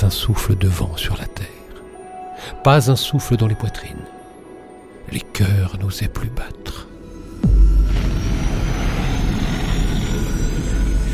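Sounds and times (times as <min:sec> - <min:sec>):
speech: 0:00.1 - 0:01.6, 0:02.4 - 0:04.1, 0:05.1 - 0:06.9
tremendous explosion detonation: 0:07.4 - 0:11.1.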